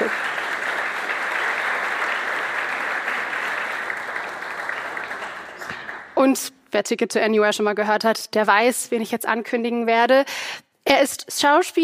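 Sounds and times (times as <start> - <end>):
audience applause: 0.0 - 6.2
speech: 6.2 - 11.8.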